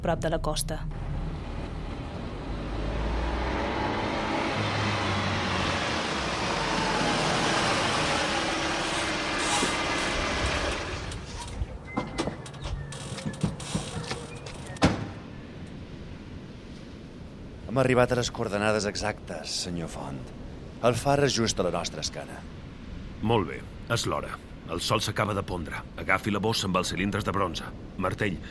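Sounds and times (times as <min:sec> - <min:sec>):
speech: 0:00.0 - 0:01.0, 0:17.8 - 0:22.6, 0:23.2 - 0:28.4
car engine: 0:00.7 - 0:11.8
strong whistling wind: 0:01.2 - 0:17.5.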